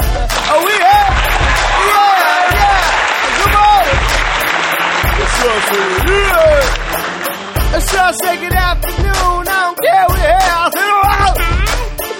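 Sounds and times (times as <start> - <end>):
crowd cheering: 0.0 - 8.6
audience clapping: 0.0 - 9.3
man shouting excitedly: 0.4 - 4.1, 5.2 - 6.8, 7.7 - 11.8
speech: 5.5 - 6.8, 7.8 - 10.8.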